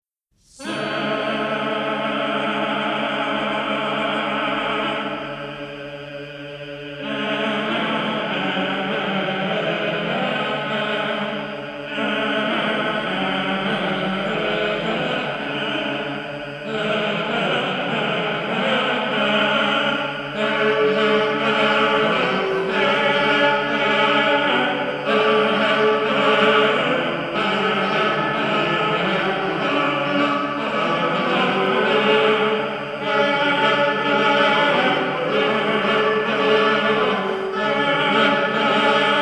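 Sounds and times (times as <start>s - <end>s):
organum singing: 0.4s - 39.1s.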